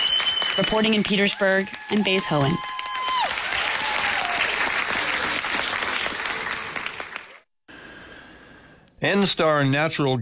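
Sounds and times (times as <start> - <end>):
thunderous audience applause: 0.0 - 7.5
speech: 0.6 - 2.8, 9.0 - 10.2.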